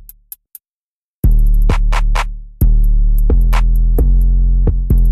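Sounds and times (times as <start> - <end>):
instrumental music: 1.3 - 5.0.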